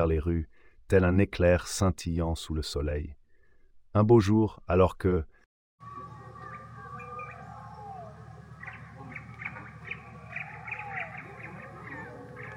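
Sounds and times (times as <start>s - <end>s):
speech: 0.0s - 3.2s, 3.9s - 6.0s
birds chirping and twittering: 5.8s - 12.5s
steady low rumble of city sounds: 5.8s - 12.5s.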